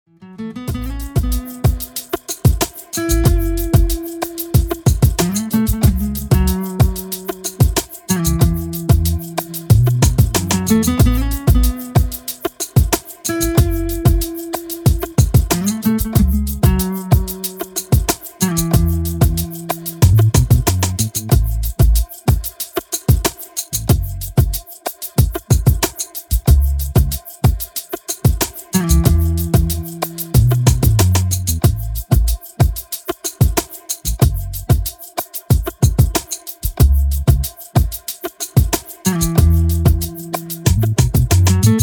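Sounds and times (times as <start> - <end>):
summer rain instrumental music: 0.1 - 41.8.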